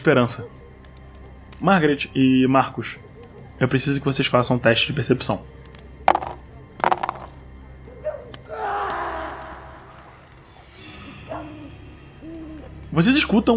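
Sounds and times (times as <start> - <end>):
speech: 0.0 - 0.6, 1.6 - 5.6, 13.0 - 13.5
muffled scream from the camp's edge: 8.0 - 10.4.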